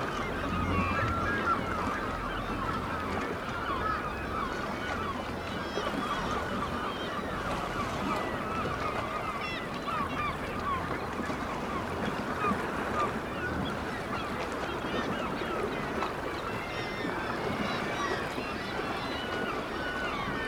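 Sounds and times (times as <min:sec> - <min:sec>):
low rumbling hum: 0:00.0 - 0:05.4
black-legged kittiwakes crying in a colony: 0:00.0 - 0:20.4
splashy background noise: 0:00.0 - 0:20.4.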